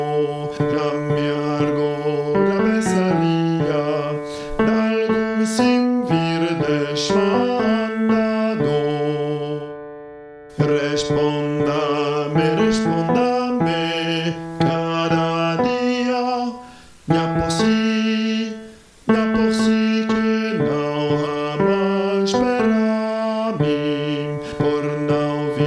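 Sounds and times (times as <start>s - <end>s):
tenor voice singing: 0.0s - 9.9s, 10.5s - 25.6s.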